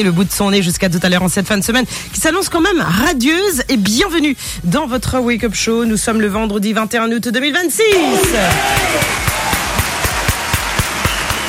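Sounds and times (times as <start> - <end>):
speech: 0.0 - 9.3
daily applause: 8.2 - 11.4.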